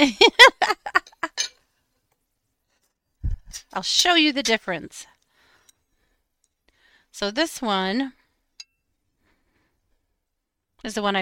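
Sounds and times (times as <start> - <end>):
speech: 0.0 - 0.4, 3.8 - 5.2, 7.2 - 8.2, 10.8 - 11.2
pieces of glass clinking: 1.3 - 1.6.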